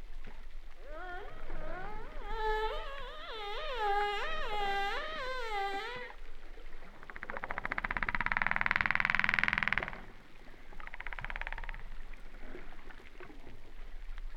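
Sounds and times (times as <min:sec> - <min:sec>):
humpback whale song: 0:00.3 - 0:10.0.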